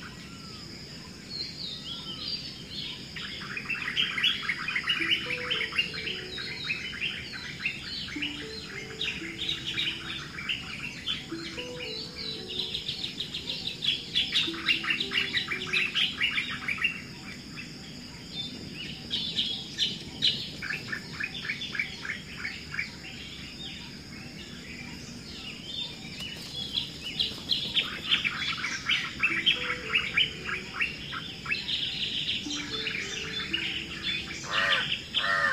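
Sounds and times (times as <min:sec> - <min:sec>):
morning soundscape: 0:00.0 - 0:35.5.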